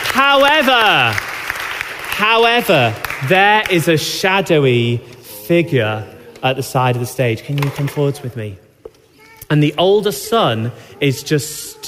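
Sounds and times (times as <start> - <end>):
audience applause: 0.0 - 4.0
speech: 0.2 - 1.3, 2.2 - 8.6, 9.5 - 11.8.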